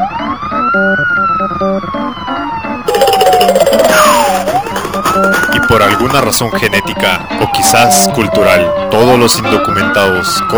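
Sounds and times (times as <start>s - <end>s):
speech: 0.7s - 2.6s, 5.8s - 10.5s
harsh noise burst: 2.9s - 6.4s
border patrol vehicle siren far off in the desert at midday: 2.9s - 10.5s.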